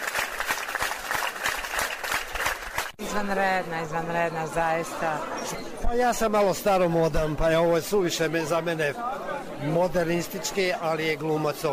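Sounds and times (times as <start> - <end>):
thunderous audience applause after a play: 0.0 - 3.0
speech: 3.2 - 11.7.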